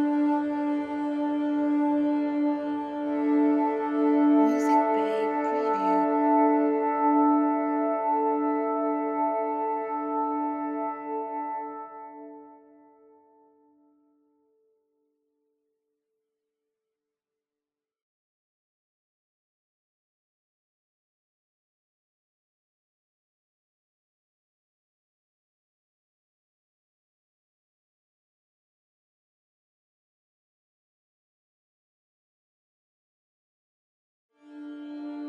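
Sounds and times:
documentary tension ambience music: 0.0s - 13.0s.

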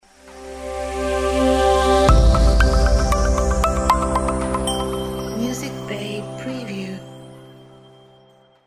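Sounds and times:
branding logo jingle: 1.7s - 8.6s.

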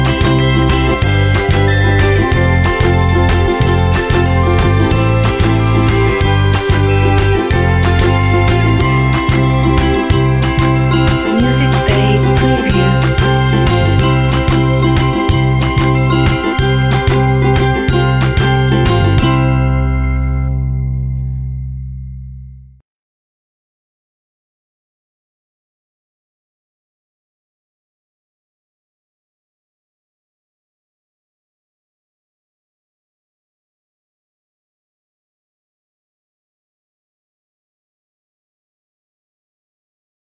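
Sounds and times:
corporate ukulele: 0.0s - 21.5s
corporate glockenspiel: 0.0s - 21.6s.

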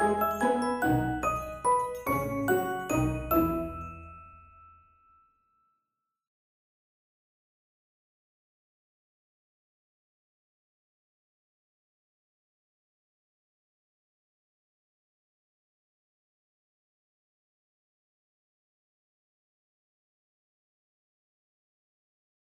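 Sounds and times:
Christmas advertising background music: 0.0s - 5.1s.

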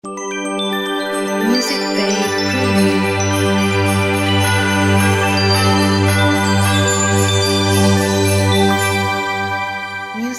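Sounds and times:
bright Christmas logo jingle: 0.1s - 10.3s.

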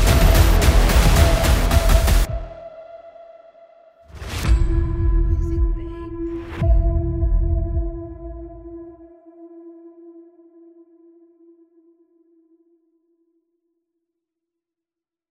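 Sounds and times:
sci-fi trailer music: 0.0s - 9.6s.

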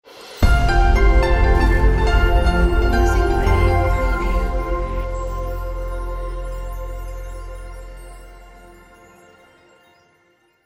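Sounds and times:
bright piano logo jingle: 0.5s - 8.0s.

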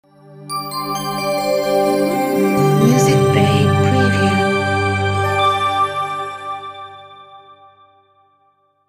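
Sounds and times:
dreamy logo sound: 0.5s - 7.6s.

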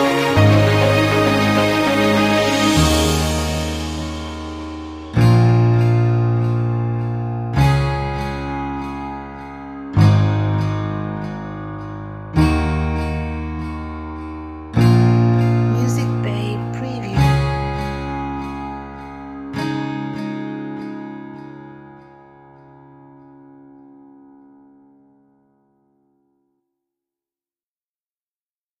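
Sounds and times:
emotional dreamy romantic trailer music: 0.0s - 22.1s.

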